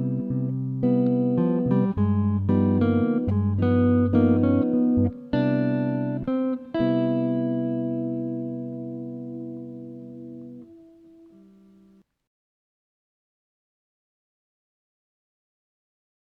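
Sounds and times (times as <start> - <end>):
guitar soloing over II V in C: 0.0 - 12.0.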